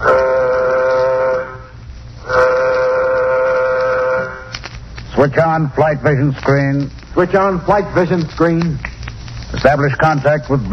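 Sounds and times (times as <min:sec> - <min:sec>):
warning signal aboard a nuclear-jet craft: 0:00.0 - 0:04.5
speech: 0:05.2 - 0:08.9, 0:09.6 - 0:10.7.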